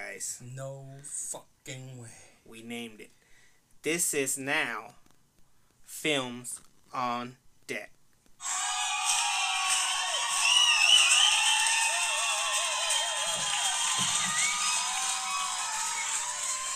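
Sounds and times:
speech: 0.2s - 3.2s, 3.8s - 5.0s, 5.9s - 8.6s
canned audience applause and cheering: 8.4s - 16.7s.

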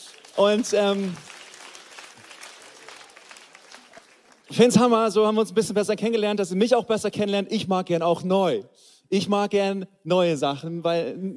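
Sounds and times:
audience applause: 0.0s - 4.9s
speech: 0.4s - 1.3s, 4.5s - 11.3s.

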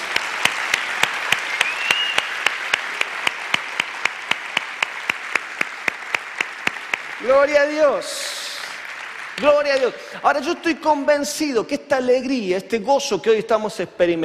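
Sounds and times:
large audience clapping in steady unison: 0.0s - 11.1s
speech: 7.2s - 8.4s, 9.4s - 14.2s.

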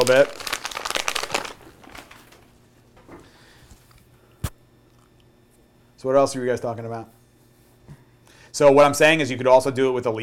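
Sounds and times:
crinkling of a dog food bag: 0.0s - 2.6s
speech: 0.1s - 0.5s, 6.0s - 7.2s, 8.6s - 10.2s.

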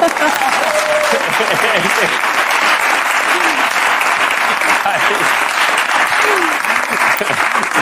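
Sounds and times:
applause: 0.0s - 7.8s
laughter: 0.0s - 7.8s.

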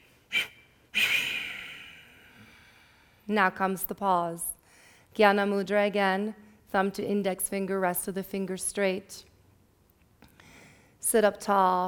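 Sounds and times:
sharp breath during a pranayama exercise: 0.0s - 3.3s
long audible exhale during a pranayama exercise: 0.3s - 3.2s
speech: 3.3s - 4.5s, 5.2s - 9.3s, 11.1s - 11.8s.

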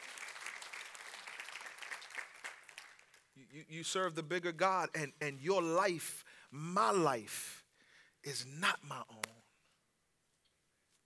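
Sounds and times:
audience clapping: 0.0s - 3.4s
speech: 3.4s - 7.6s, 8.2s - 9.1s.

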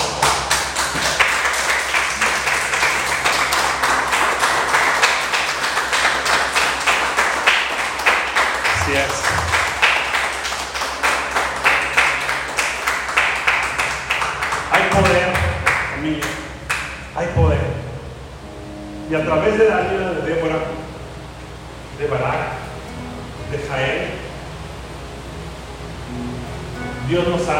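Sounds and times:
audience applauding: 0.0s - 17.2s
low steady hum: 0.0s - 27.5s
voices: 1.8s - 13.0s, 13.7s - 27.5s.

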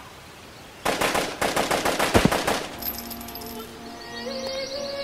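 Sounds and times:
machine gun fire sound effect: 0.8s - 2.8s.

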